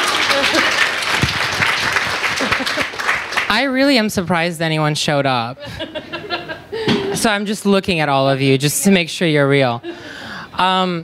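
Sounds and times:
laughter: 0:00.0 - 0:01.0, 0:02.2 - 0:03.1, 0:05.6 - 0:07.2
audience applause: 0:00.0 - 0:03.6
speech: 0:03.5 - 0:06.0, 0:07.2 - 0:11.0.

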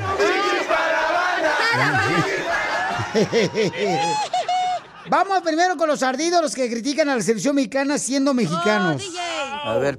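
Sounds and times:
crowd shouting and cheering: 0:00.0 - 0:05.8
laughter: 0:01.4 - 0:06.0
speech: 0:01.8 - 0:02.5, 0:03.1 - 0:04.3, 0:05.0 - 0:09.9.

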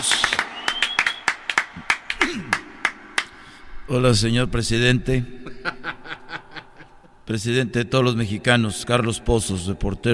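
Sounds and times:
small group clapping: 0:00.0 - 0:03.4
speech: 0:03.9 - 0:05.5, 0:07.3 - 0:10.1
laughter: 0:05.4 - 0:07.2.

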